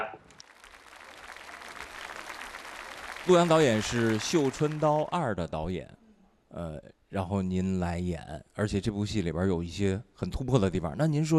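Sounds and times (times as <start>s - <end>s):
audience applause at a Chinese film event honoring an actress: 0.3s - 5.3s
speech: 3.2s - 6.0s, 6.6s - 11.3s.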